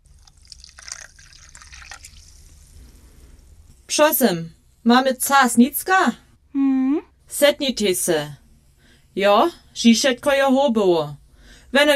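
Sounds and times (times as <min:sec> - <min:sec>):
tea pouring into a cup: 0:00.0 - 0:02.9
speech: 0:04.0 - 0:06.2, 0:07.3 - 0:08.4, 0:09.2 - 0:11.9.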